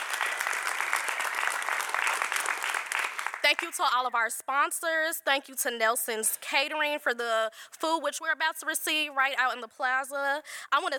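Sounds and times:
audience round of applause: 0.0 - 3.5
speech: 3.5 - 10.9.

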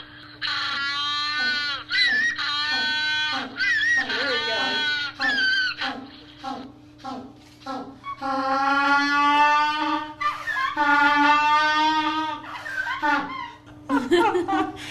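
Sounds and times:
African penguins braying: 0.4 - 6.5, 7.8 - 13.6
laughter: 10.2 - 11.4, 12.0 - 14.8.

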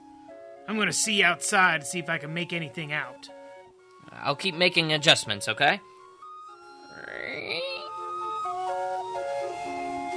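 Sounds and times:
steam calliope music from a sternwheeler: 0.0 - 10.1
speech: 0.7 - 3.4, 4.0 - 5.9
shrill whistle: 7.8 - 10.1.

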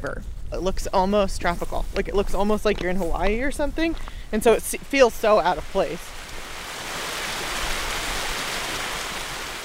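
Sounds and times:
speech: 0.0 - 6.2
waterfall: 4.0 - 9.6.

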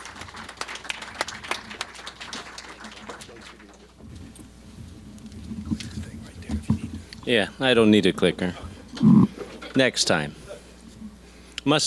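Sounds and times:
audience applauding a speaker's welcome: 0.0 - 4.0
speech: 7.3 - 9.2, 9.8 - 10.4, 11.6 - 11.8.

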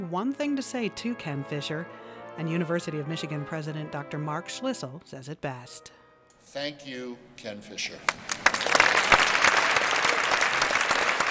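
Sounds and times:
speech: 0.0 - 8.5
audience applause: 8.0 - 11.3.

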